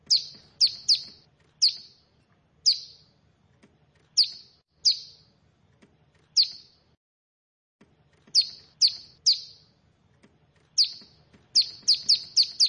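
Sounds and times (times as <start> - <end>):
bar-winged prinia giving high sharp down-slurred chirps: 0.0 - 3.1, 4.1 - 5.3, 6.3 - 6.8, 8.3 - 9.7, 10.7 - 12.6.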